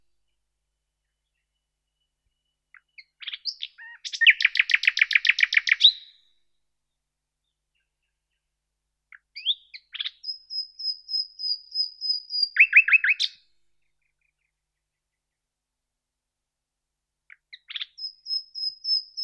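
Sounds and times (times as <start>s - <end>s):
common nightingale Luscinia megarhynchos singing: 1.0s - 6.2s, 9.1s - 13.4s, 17.3s - 19.2s.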